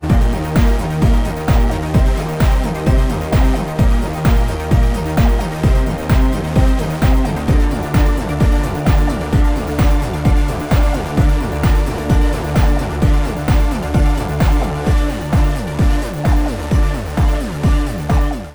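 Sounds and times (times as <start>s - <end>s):
short proto-rave music: 0.0s - 18.5s.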